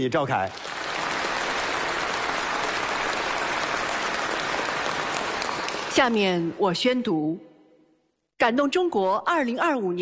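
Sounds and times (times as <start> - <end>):
speech: 0.0 - 0.9, 6.0 - 7.5, 8.4 - 9.9
large audience applause: 0.3 - 6.2.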